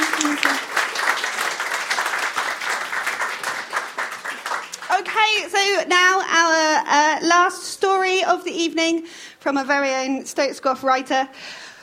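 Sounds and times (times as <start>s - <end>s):
audience applause: 0.0s - 5.2s
speech: 5.4s - 11.6s.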